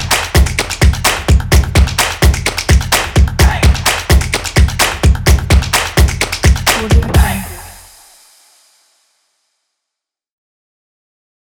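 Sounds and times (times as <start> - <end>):
percussion drums: 0.0 - 9.1.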